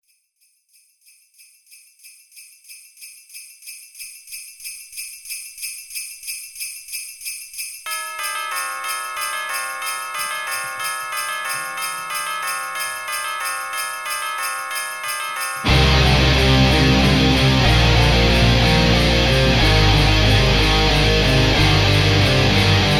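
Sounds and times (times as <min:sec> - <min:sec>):
music without drums: 0:06.0 - 0:22.9.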